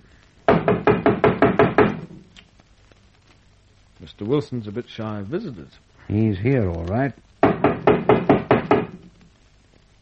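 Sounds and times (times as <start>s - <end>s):
knocking on a wooden door: 0.5s - 2.2s, 7.4s - 9.1s
speech: 4.2s - 7.3s.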